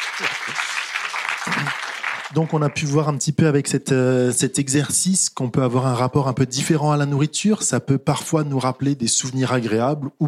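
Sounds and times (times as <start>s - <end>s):
audience clapping: 0.0s - 3.1s
speech: 2.3s - 10.2s.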